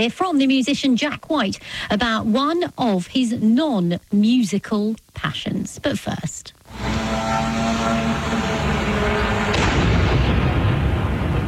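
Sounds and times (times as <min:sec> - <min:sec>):
speech: 0:00.0 - 0:07.1
drone engine buzzing: 0:06.7 - 0:11.0
drone crashing into apartment block: 0:06.7 - 0:11.4
rumbling roar: 0:06.7 - 0:11.4.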